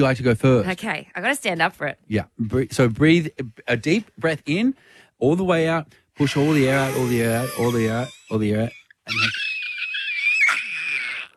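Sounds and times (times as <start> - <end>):
speech: 0.0 - 9.5
person screaming as hard as they can: 6.2 - 8.3, 9.1 - 11.3.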